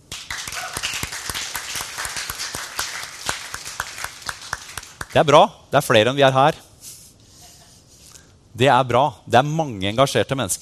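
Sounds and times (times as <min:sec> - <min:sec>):
crowd applauding: 0:00.0 - 0:05.2
speech: 0:05.2 - 0:06.7, 0:08.6 - 0:10.6.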